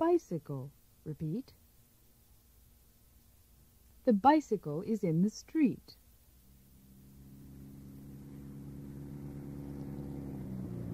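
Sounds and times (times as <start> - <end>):
speech: 0.0 - 1.6, 4.0 - 6.0
car engine droning: 6.5 - 10.9.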